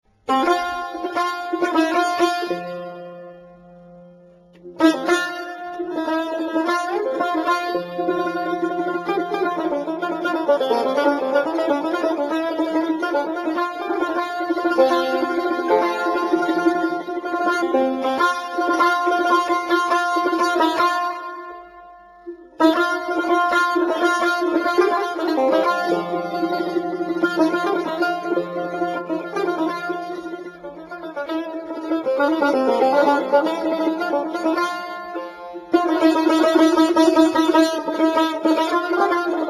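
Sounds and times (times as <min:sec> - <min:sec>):
tar solo: 0:00.1 - 0:39.4.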